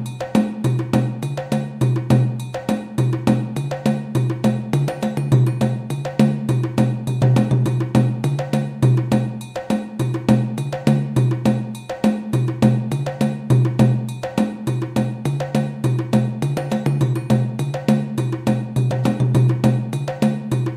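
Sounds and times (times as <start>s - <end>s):
djembe groove at 205 bpm: 0.0s - 20.7s.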